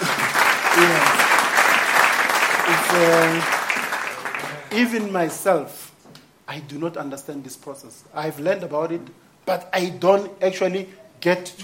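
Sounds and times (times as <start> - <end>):
applause: 0.0 - 5.4
speech: 0.8 - 1.2, 2.7 - 3.6, 4.7 - 5.8, 6.5 - 11.6.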